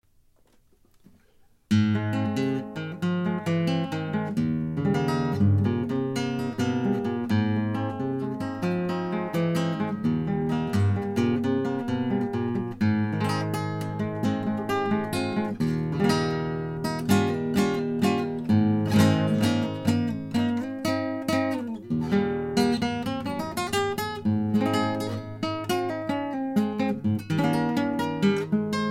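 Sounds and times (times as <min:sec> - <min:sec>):
classical guitar playing guajiras: 0:00.4 - 0:28.9.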